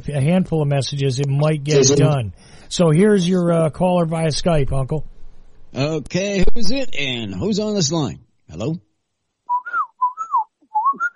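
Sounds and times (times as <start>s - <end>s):
speech: 0.0s - 5.1s, 5.7s - 8.9s
person whistling a bird call imitation: 9.5s - 11.1s.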